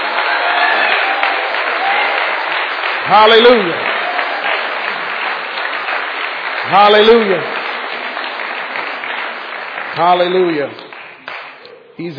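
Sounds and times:
audience applauding and clapping: 0.0s - 11.7s
speech: 3.1s - 3.9s, 6.7s - 7.6s, 10.0s - 10.8s, 12.0s - 12.1s.

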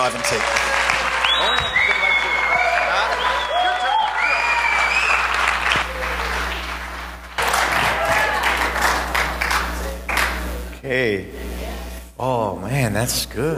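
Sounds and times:
speech: 0.0s - 0.8s, 10.9s - 11.4s, 12.2s - 13.5s
audience hand clapping: 0.0s - 10.7s.

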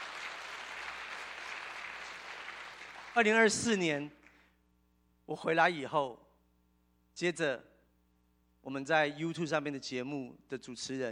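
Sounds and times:
audience clapping: 0.0s - 3.6s
speech: 3.2s - 4.2s, 5.3s - 6.2s, 7.2s - 7.7s, 8.6s - 11.0s.

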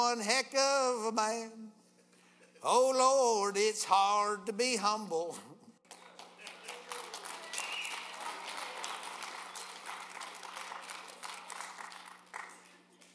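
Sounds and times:
speech: 0.0s - 1.8s, 2.6s - 5.5s
audience clapping after a song: 5.8s - 13.1s.

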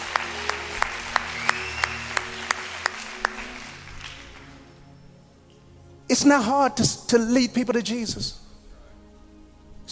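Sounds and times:
audience hand clapping: 0.0s - 4.8s
speech: 6.1s - 8.4s.

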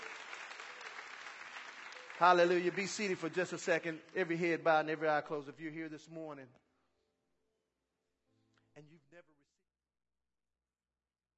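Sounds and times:
audience hand clapping: 0.0s - 5.2s
speech: 2.2s - 6.6s.

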